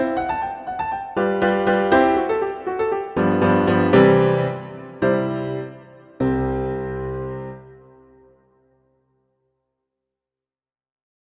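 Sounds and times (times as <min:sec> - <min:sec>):
rondo grazioso allegro: 0:00.0 - 0:08.0.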